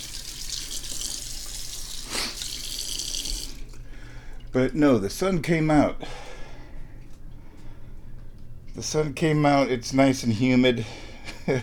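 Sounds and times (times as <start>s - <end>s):
running water from a tap rinsing a sponge and a hand: 0.0s - 5.1s
speech: 4.5s - 6.2s, 8.8s - 11.6s.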